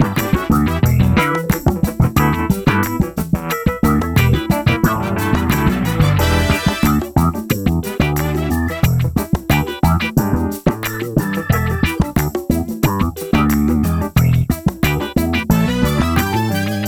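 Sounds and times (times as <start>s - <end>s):
funk music: 0.0s - 16.8s.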